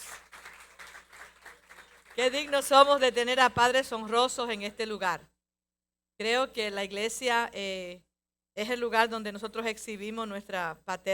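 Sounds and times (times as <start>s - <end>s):
crowd applauding: 0.0s - 2.8s
speech: 2.2s - 5.3s, 6.2s - 11.1s.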